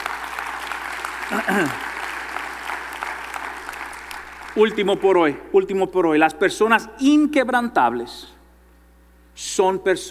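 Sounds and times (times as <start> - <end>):
audience applause: 0.0 - 5.2
speech: 1.3 - 1.9, 4.6 - 8.4, 9.4 - 10.1.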